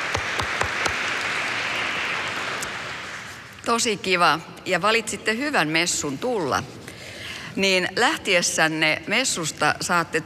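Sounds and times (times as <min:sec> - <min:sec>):
audience applause: 0:00.0 - 0:03.5
speech: 0:03.7 - 0:06.8, 0:07.6 - 0:10.2.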